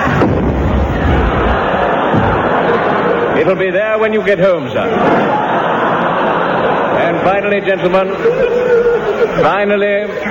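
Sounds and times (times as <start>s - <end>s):
cannon firing a shell: 0.0s - 2.8s
faint crowd noise: 0.0s - 10.2s
laughter: 0.0s - 10.2s
speech: 3.4s - 5.5s, 7.0s - 10.2s.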